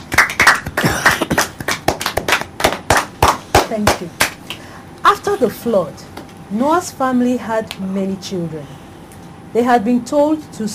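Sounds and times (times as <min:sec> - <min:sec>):
audience applause: 0:00.0 - 0:03.3
speech: 0:03.7 - 0:04.3, 0:05.0 - 0:08.8, 0:09.5 - 0:10.7.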